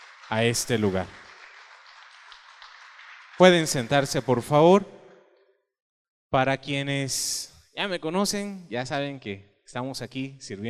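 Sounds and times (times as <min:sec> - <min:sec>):
large crowd applauding: 0:00.0 - 0:04.8
speech: 0:00.3 - 0:01.2, 0:03.4 - 0:05.0, 0:06.3 - 0:10.6.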